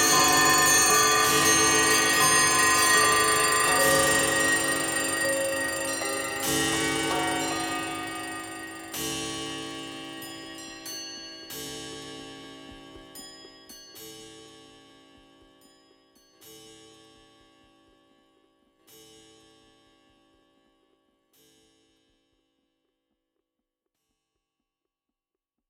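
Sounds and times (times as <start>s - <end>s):
clocks: 0.0s - 11.1s.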